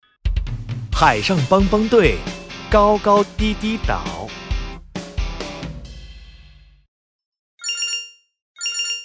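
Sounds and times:
speech: 1.0 - 4.4
phone watch trilling electronic ringtone: 7.6 - 9.0.

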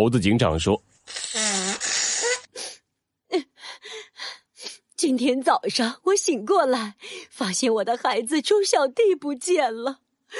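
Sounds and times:
speech: 0.0 - 1.3, 5.0 - 10.3
person blowing nose into a handkerchief: 1.1 - 2.7.

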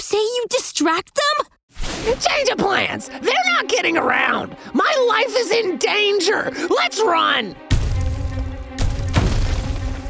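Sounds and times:
speech: 0.0 - 7.6
Giganotosaurus's palm slapping the ice heavily: 7.7 - 10.0.

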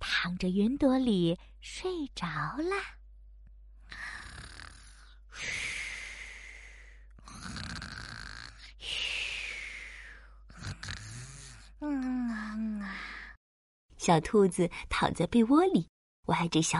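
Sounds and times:
speech: 0.2 - 3.0, 14.0 - 16.7
person imitating snoring: 3.9 - 5.6, 7.2 - 8.8, 10.5 - 13.0.

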